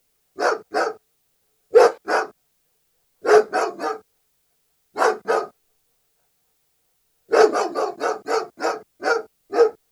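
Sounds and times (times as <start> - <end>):
German Shepherd barking: 0.4 - 1.0, 1.7 - 2.4, 3.2 - 4.1, 5.0 - 5.6, 7.3 - 9.8.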